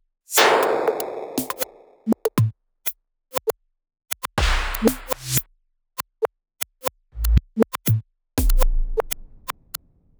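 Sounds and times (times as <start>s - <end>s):
dry drum: 0.4s - 2.5s, 4.4s - 5.4s, 7.2s - 9.5s.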